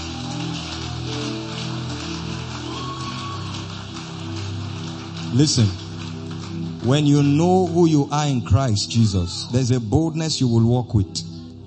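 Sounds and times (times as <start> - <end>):
audience clapping: 0.0 - 9.8
speech: 5.3 - 5.8, 6.8 - 11.3.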